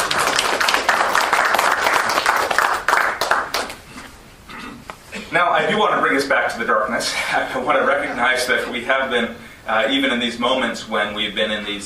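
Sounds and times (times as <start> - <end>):
audience applause: 0.0 - 3.8
speech: 5.4 - 11.8.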